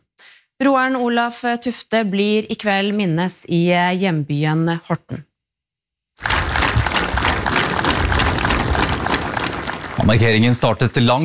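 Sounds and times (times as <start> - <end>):
speech: 0.6 - 5.3, 10.1 - 11.2
crowd applause: 6.2 - 11.0.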